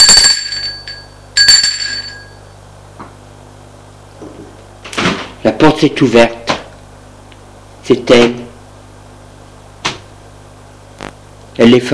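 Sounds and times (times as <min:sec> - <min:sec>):
apartment doorbell ringing: 0:00.0 - 0:02.6
speech: 0:05.7 - 0:06.4, 0:07.9 - 0:08.4, 0:11.6 - 0:11.9.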